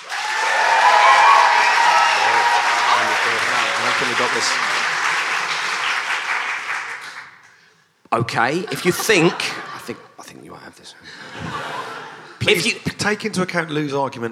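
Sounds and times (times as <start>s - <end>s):
scattered cheers: 0.0s - 4.9s
live audience applauding: 0.0s - 7.6s
speech: 4.3s - 4.7s, 8.2s - 11.8s, 12.4s - 14.3s
laughter: 8.5s - 10.4s, 11.0s - 13.0s.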